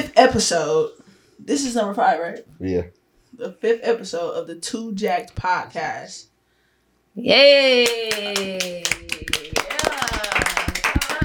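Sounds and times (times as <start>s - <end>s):
speech: 0.2s - 6.3s, 7.2s - 9.4s
hands clapping: 7.8s - 11.2s.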